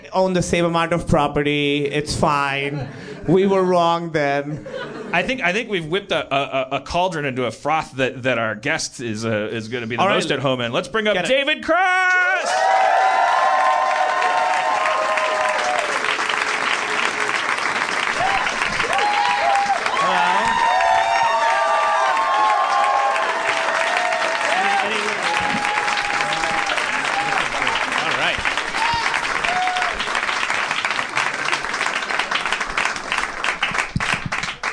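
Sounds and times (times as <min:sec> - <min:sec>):
speech: 0:00.2 - 0:13.1
cheers and whoops: 0:11.8 - 0:16.2, 0:18.1 - 0:30.2
large audience applause: 0:12.4 - 0:34.7.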